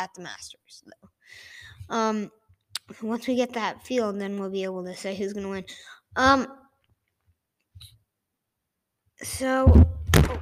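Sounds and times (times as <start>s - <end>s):
speech: 0.0s - 6.6s, 9.2s - 10.4s
microphone falling over: 9.7s - 10.4s.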